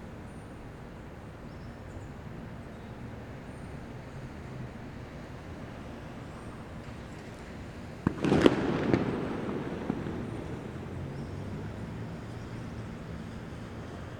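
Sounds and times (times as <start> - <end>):
fireworks at dawn on election day in Venezuela: 6.2 - 14.1.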